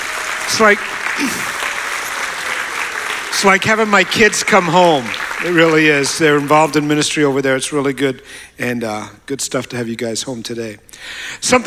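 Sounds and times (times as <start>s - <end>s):
church congregation applauding to welcome visiting worship leaders: 0.0s - 7.4s
speech: 0.5s - 1.6s, 3.4s - 11.6s.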